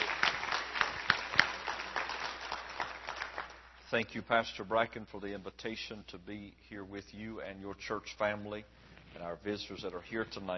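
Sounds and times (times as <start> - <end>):
audience hand clap of praise: 0.0 - 3.7
speech: 3.9 - 10.5.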